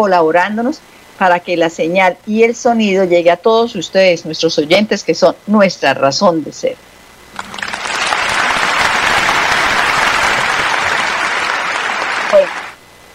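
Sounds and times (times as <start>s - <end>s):
speech: 0.0s - 7.6s
crowd applause: 7.4s - 12.8s.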